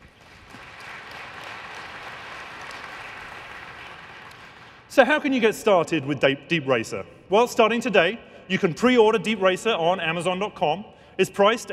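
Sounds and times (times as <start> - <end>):
audience round of applause: 0.0 - 4.9
speech: 5.0 - 11.7.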